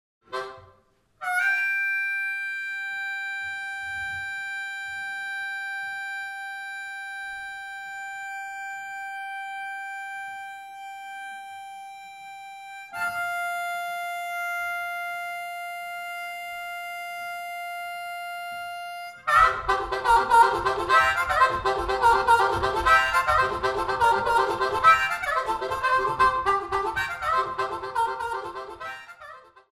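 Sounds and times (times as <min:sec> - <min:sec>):
folk music: 0:00.3 - 0:29.7.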